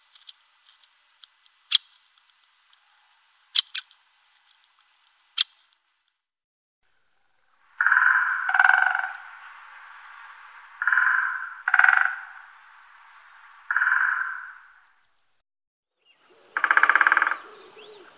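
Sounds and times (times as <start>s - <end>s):
great spotted woodpecker calling sharp kik notes: 1.5s - 2.1s, 2.7s - 4.0s, 5.4s - 5.7s, 7.2s - 9.3s, 10.8s - 12.5s, 13.7s - 14.7s, 16.3s - 18.1s.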